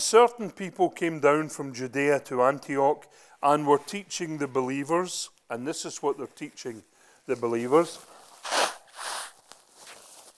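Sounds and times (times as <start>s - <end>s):
speech: 0.0s - 8.7s
person blowing nose: 8.0s - 10.3s.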